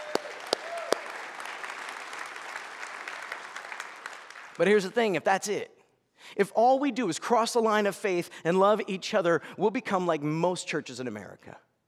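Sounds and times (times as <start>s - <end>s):
audience applause: 0.0s - 4.6s
speech: 4.6s - 11.7s.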